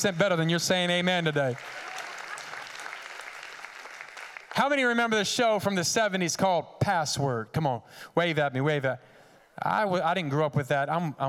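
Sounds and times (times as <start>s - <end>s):
speech: 0.0s - 1.9s, 4.6s - 11.2s
audience clapping hands: 0.0s - 5.0s.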